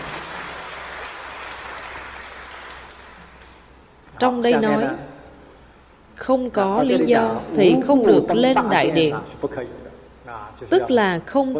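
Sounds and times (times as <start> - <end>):
audience at a lecture applauding: 0.0 - 3.8
speech: 4.2 - 5.1, 6.2 - 11.5.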